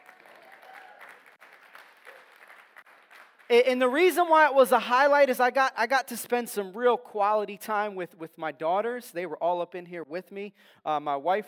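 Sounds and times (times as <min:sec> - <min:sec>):
audience applause: 0:00.0 - 0:03.5
speech: 0:03.5 - 0:11.4.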